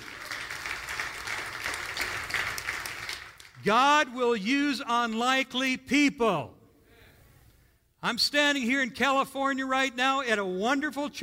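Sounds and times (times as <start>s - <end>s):
audience applauding: 0.0s - 3.7s
speech: 3.6s - 6.6s, 8.0s - 11.2s.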